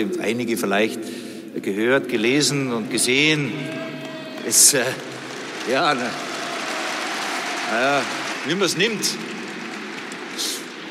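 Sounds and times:
speech: 0.0s - 6.3s, 7.7s - 9.4s
applause from club members: 3.4s - 10.8s.

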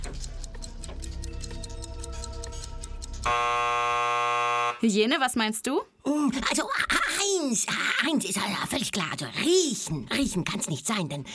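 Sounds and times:
countdown clock ticking: 0.0s - 3.3s
loud sustained buzzer tone: 3.3s - 4.9s
speech: 4.8s - 11.3s.

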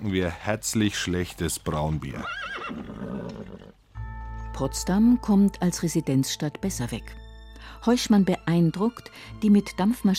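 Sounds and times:
speech: 0.0s - 3.2s, 4.6s - 10.1s
hooves clattering: 0.5s - 3.7s
horse whinnying: 2.1s - 3.8s.

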